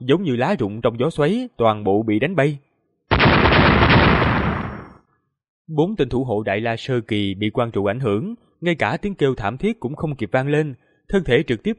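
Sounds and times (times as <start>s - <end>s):
speech: 0.0s - 2.7s, 5.7s - 11.7s
loud explosion sound effect: 3.1s - 5.0s.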